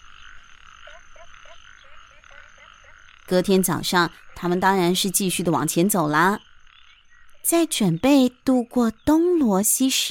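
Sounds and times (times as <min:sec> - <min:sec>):
frogs croaking: 0:00.0 - 0:10.0
speech: 0:03.3 - 0:06.5, 0:07.4 - 0:10.0.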